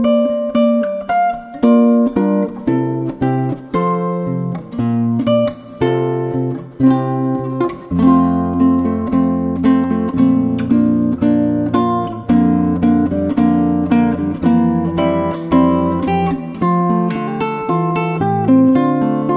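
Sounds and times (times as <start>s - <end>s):
classical guitar: 0.0s - 19.3s.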